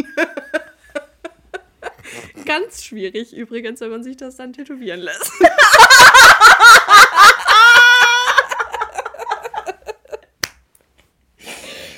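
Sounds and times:
speech: 2.4s - 7.0s
laughter: 5.2s - 10.2s
hands clapping: 10.4s - 10.9s.

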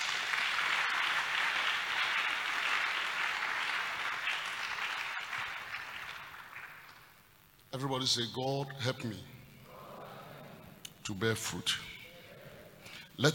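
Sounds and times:
audience clapping: 0.0s - 7.3s
speech: 7.8s - 9.3s, 11.1s - 11.9s, 13.2s - 13.3s.

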